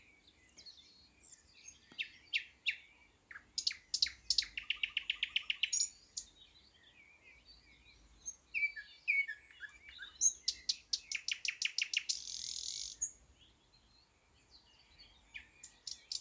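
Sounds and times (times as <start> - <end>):
thrush nightingale Luscinia luscinia song: 0.0 - 16.1.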